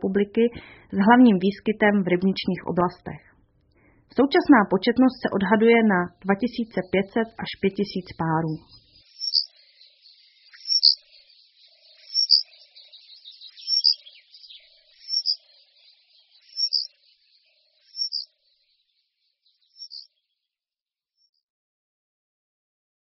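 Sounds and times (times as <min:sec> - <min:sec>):
speech: 0:00.0 - 0:03.3, 0:04.1 - 0:08.8
Eurasian penduline tit calling: 0:04.1 - 0:20.2
faint twittering: 0:08.6 - 0:20.1.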